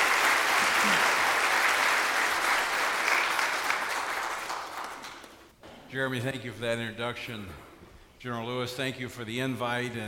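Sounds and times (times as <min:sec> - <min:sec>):
audience applause welcoming speaker Tony Perkins: 0:00.0 - 0:05.4
speech: 0:05.9 - 0:10.0.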